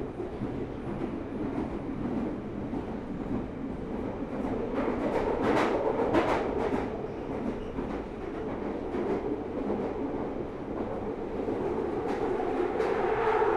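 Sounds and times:
empty Underground train rumbling with a steady roar: 0.0 - 13.5.

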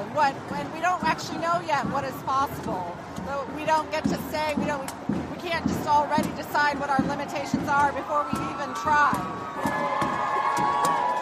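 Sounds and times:
speech: 0.2 - 10.8
people cheering from windows: 8.1 - 11.1
people clapping from windows: 9.1 - 11.1.

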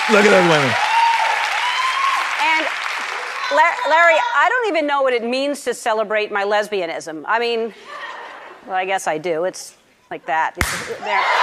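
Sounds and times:
crowd whooping and cheering: 0.0 - 2.5, 11.0 - 11.4
crowd clapping: 0.0 - 3.9
speech: 0.1 - 0.8, 3.5 - 8.0, 8.6 - 11.4.

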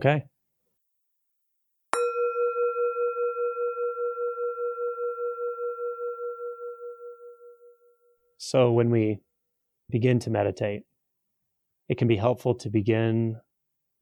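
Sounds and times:
speech: 0.0 - 0.3, 8.4 - 9.3, 9.9 - 10.9, 11.9 - 13.4
meditation bell ringing: 2.0 - 8.3.

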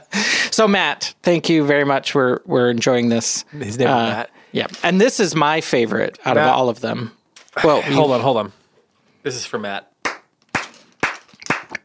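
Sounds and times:
speech: 0.6 - 8.6, 9.2 - 9.9
hand clapping: 10.0 - 11.8.

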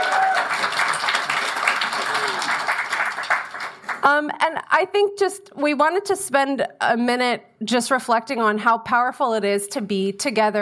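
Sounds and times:
live audience round of applause: 0.0 - 4.1
speech: 4.0 - 10.6.

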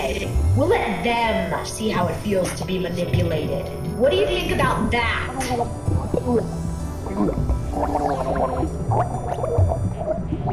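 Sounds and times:
speech: 0.1 - 9.4
person gargling water while drowning: 5.4 - 10.5.

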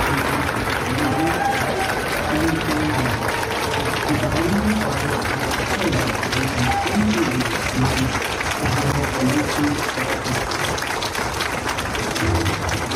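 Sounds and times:
indistinct voices murmuring: 0.0 - 10.6
crowd applause at an award celebration: 0.0 - 12.9.

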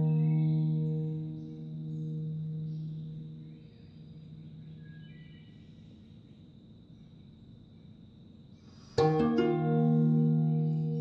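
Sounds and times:
solo guzheng piece: 0.0 - 3.1, 9.0 - 11.0
soft hiss: 0.0 - 11.0.

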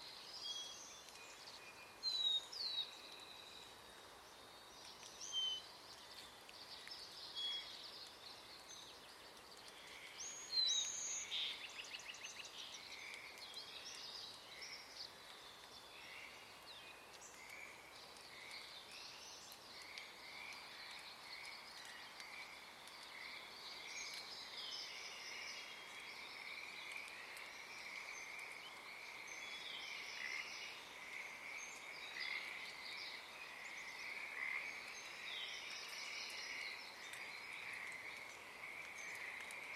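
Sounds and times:
background hiss: 0.0 - 39.7
Pacific tree frog chorus: 17.4 - 18.8, 19.8 - 39.7.

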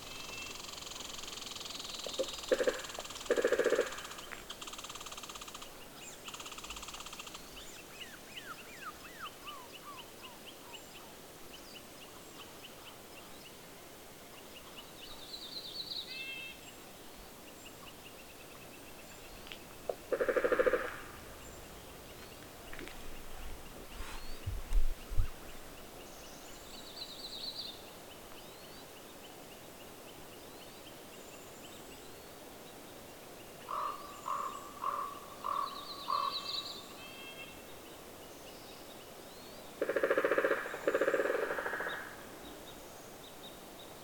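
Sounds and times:
steady low hiss: 0.0 - 44.0
pileated woodpeckers hammering in a forest in Montana: 0.7 - 5.7, 19.8 - 23.0, 39.8 - 42.2.

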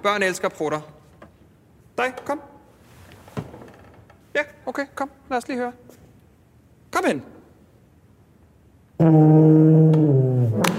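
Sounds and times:
speech: 0.0 - 1.0, 2.0 - 2.5, 4.4 - 6.0, 7.0 - 7.4, 9.0 - 10.7
low buzzy instrument note: 9.0 - 10.7.

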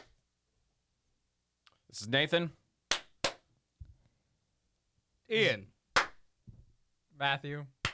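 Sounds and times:
speech: 1.9 - 2.6, 5.3 - 5.7, 7.2 - 7.8
hand clap for microphone sync: 2.9 - 3.5, 6.0 - 6.2.

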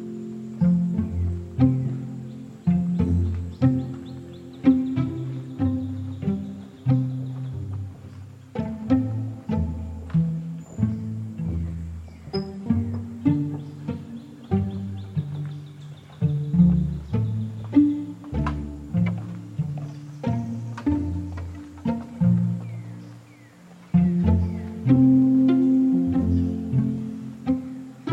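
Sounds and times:
chorus of grunting and croaking calls in the Lettuce Lakes cypress swamp: 0.0 - 28.1.

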